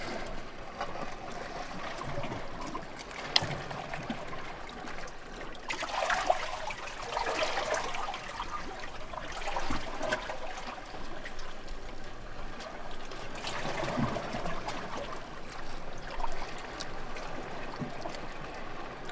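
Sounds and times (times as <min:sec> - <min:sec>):
waves: 0:00.0 - 0:19.1.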